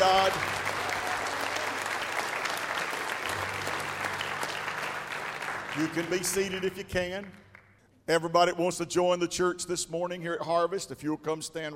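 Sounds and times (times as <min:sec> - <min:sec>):
audience clapping hands in praise: 0:00.0 - 0:07.8
speech: 0:05.8 - 0:07.5, 0:08.1 - 0:11.7.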